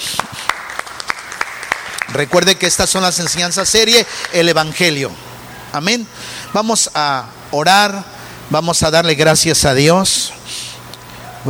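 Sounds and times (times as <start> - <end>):
audience applause: 0.0 - 4.6
speech: 2.1 - 10.5.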